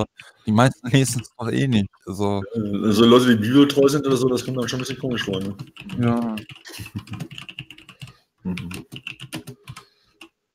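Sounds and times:
speech: 0.0 - 7.5, 8.4 - 9.5
typing on a computer keyboard: 2.7 - 10.4.

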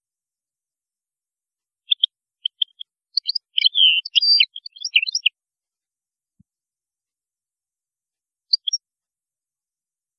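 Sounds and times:
European goldfinch twittering: 1.9 - 5.3, 8.5 - 8.8.

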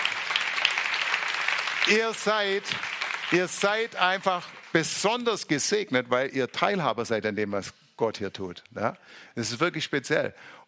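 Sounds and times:
church congregation applause during a worship service: 0.0 - 5.7
speech: 1.8 - 10.6.

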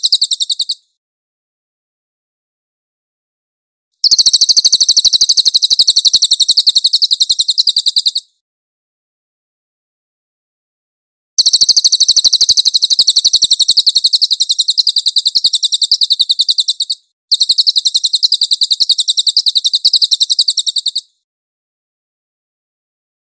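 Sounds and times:
cililin singing a high dense rattle: 0.0 - 0.9, 4.0 - 8.4, 11.4 - 21.2.

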